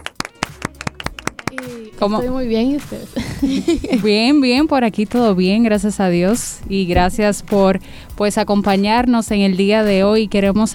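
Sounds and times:
applause: 0.0 - 1.8
speech: 1.6 - 10.7
laughter: 3.2 - 4.3.

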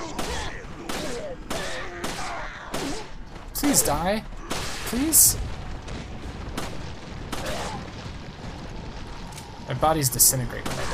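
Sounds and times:
video game gunfire: 0.0 - 9.3, 10.5 - 10.9
speech: 3.6 - 4.3, 4.9 - 5.5, 9.8 - 10.8.

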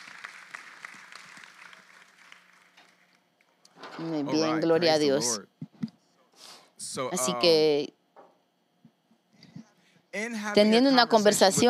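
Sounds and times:
audience applause: 0.0 - 3.2
speech: 4.0 - 5.5, 6.9 - 7.9, 10.2 - 11.6.

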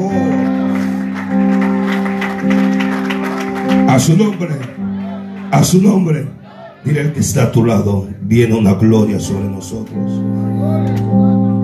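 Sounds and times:
audience applauding: 0.0 - 6.7
speech: 3.9 - 4.8, 5.5 - 11.6.

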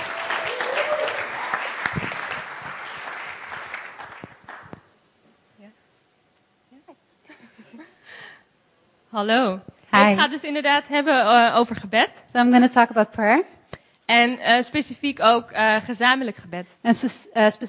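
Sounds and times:
audience applause: 0.0 - 4.9
speech: 9.2 - 13.5, 14.1 - 17.6.

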